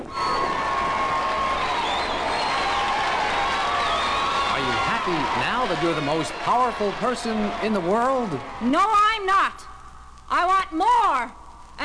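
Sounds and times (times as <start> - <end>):
crowd cheering: 0.0 - 9.3
speech: 5.1 - 9.7, 10.3 - 11.8.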